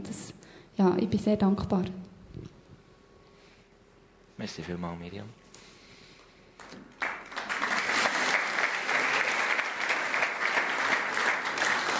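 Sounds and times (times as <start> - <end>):
speech: 0.8 - 2.1, 4.4 - 5.4
crowd applause: 6.6 - 11.9.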